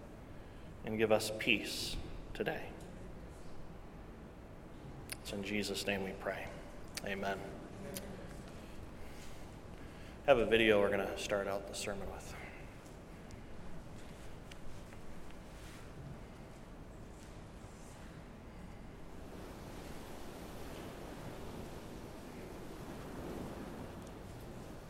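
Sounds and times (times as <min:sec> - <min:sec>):
speech: 0:00.8 - 0:02.8, 0:05.3 - 0:08.2, 0:10.3 - 0:12.4
stormy sea waves: 0:18.2 - 0:24.8
wind noise: 0:18.9 - 0:24.8.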